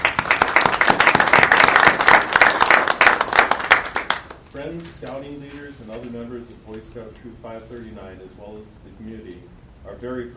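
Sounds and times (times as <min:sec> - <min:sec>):
crowd applause: 0:00.0 - 0:04.4
speech: 0:04.6 - 0:10.3.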